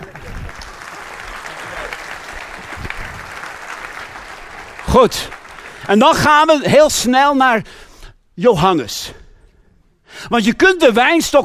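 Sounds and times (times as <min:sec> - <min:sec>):
audience applause: 0:00.0 - 0:06.5
speech: 0:05.0 - 0:07.8, 0:08.4 - 0:09.2, 0:10.2 - 0:11.4.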